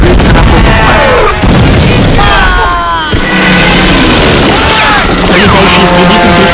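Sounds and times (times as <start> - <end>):
explosion: 0.0 - 6.5.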